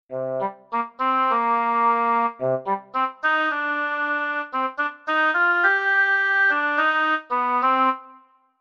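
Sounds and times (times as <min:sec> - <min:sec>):
oboe: 0:00.1 - 0:08.3.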